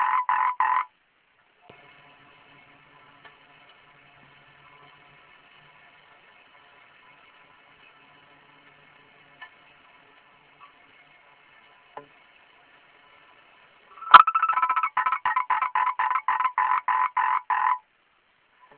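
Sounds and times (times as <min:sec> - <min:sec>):
frog croaking: 0:00.0 - 0:00.9, 0:14.0 - 0:17.8.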